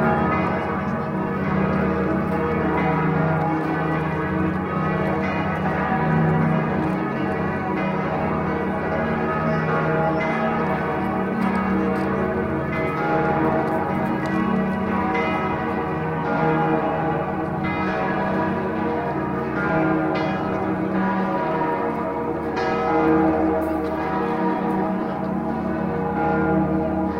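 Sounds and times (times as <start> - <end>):
big clock bells in Salzburg: 0.0 - 27.1.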